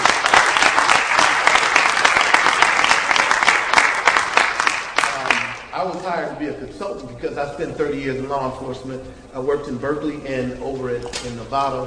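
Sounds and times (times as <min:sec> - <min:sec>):
crowd applause: 0:00.0 - 0:05.7
speech: 0:05.8 - 0:11.8.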